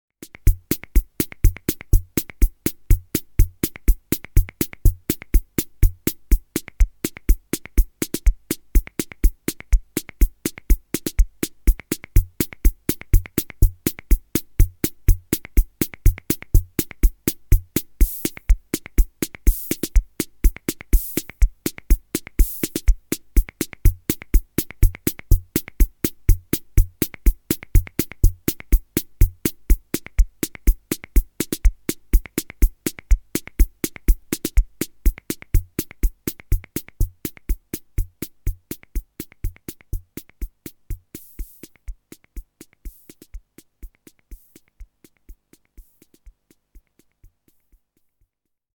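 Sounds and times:
pasodoble rhythm: 0.2s - 48.3s.

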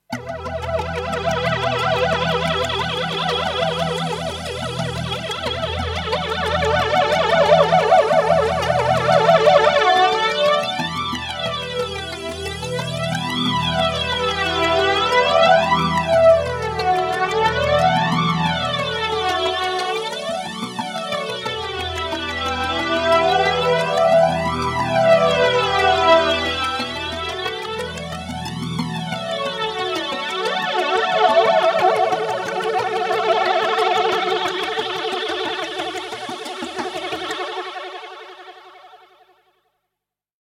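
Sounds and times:
flanged synth pad loop: 0.1s - 39.0s.

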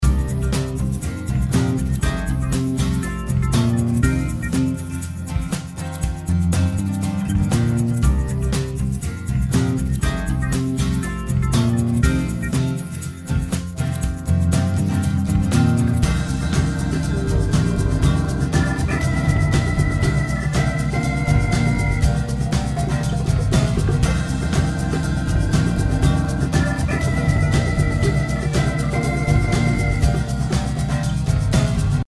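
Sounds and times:
song without vocals: 0.0s - 32.0s.

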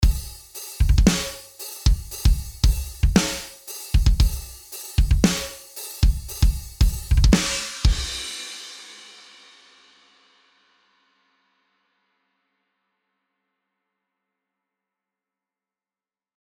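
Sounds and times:
dry metal drum kit: 0.0s - 9.1s.

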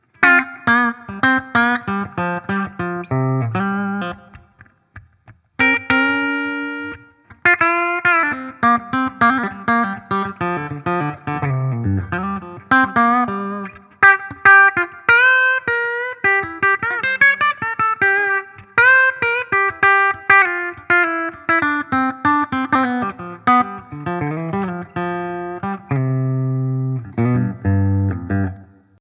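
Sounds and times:
Hagstrom Alvar electric guitar clean tone on bridge pickup: 0.0s - 28.9s.

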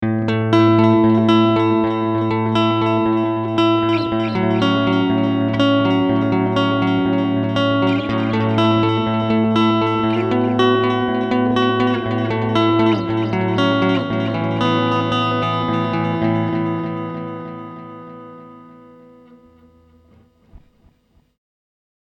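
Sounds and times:
digital guitar: 0.0s - 21.3s.

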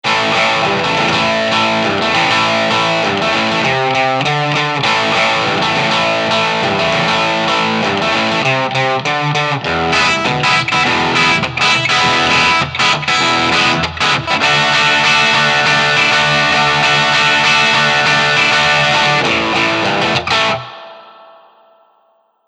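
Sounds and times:
neck pickup guitar through Tube Screamer overdrive: 0.0s - 22.4s.

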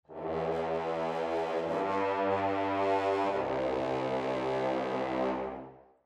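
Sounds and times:
brass playing portato: 0.1s - 5.8s.

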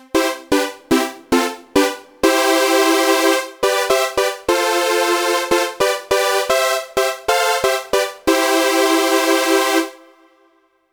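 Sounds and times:
supersaw synth: 0.1s - 10.4s.

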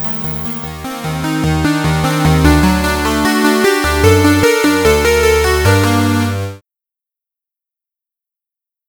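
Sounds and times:
iMini synthesizer sync poly with resonant filter: 0.0s - 6.2s.

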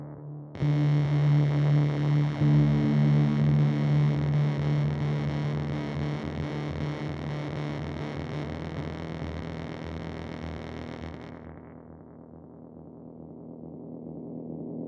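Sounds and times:
Pigtronix Constellator effect pedal space rip: 0.7s - 11.8s.

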